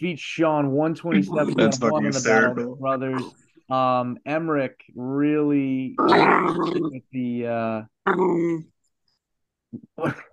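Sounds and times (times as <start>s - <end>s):
speech: 0.0s - 8.7s, 9.7s - 10.3s
agitated dog growling: 6.0s - 7.0s.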